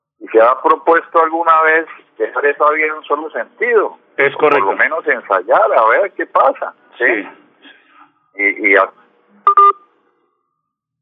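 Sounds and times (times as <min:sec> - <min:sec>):
speech: 0:00.4 - 0:07.4, 0:08.4 - 0:09.0
disconnect beeps from a dropped telephone call: 0:09.5 - 0:09.8.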